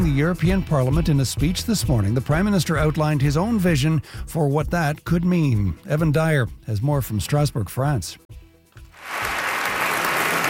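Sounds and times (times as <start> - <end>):
speech: 0.2 - 8.2
European Parliament standing ovation applause: 9.0 - 10.4.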